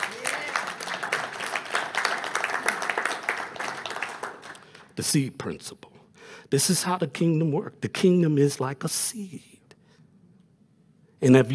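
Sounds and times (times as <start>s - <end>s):
crowd applauding: 0.0s - 5.0s
speech: 5.0s - 5.9s, 6.5s - 9.5s, 11.2s - 11.5s.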